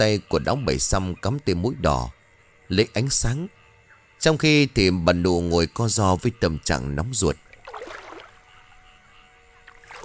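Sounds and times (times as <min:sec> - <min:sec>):
speech: 0:00.0 - 0:03.6, 0:04.2 - 0:07.4
quiet, steady watery hum: 0:07.2 - 0:10.0
splashy oar strokes of a rowboat on a river: 0:07.4 - 0:08.7, 0:09.6 - 0:10.0.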